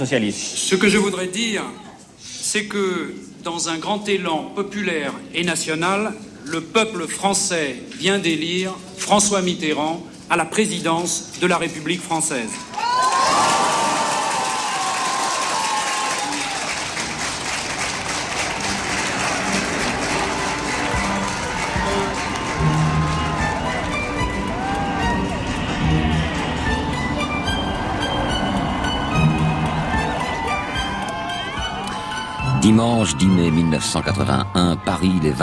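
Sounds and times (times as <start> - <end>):
speech: 0.0 - 1.9, 2.5 - 12.8, 32.8 - 35.4
scattered applause from Paris street crowd: 12.4 - 35.4
large street crowd in Paris cheering for François Mitterrand's election: 12.5 - 17.2, 17.9 - 35.4
high whoops from Paris street crowd: 12.6 - 16.8, 20.5 - 32.6.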